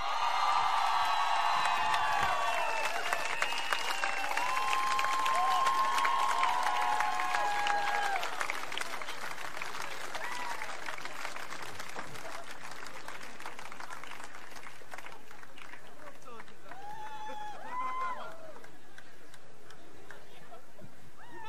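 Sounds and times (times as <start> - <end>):
festival crowd applauding and cheering a performer: 0.0 - 20.2
whistles: 2.6 - 4.4.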